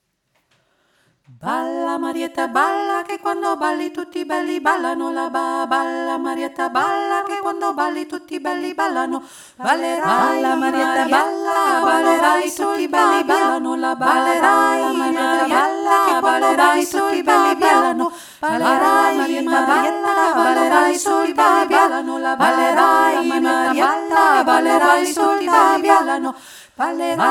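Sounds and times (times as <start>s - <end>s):
four-voice canon singing: 1.4s - 27.2s.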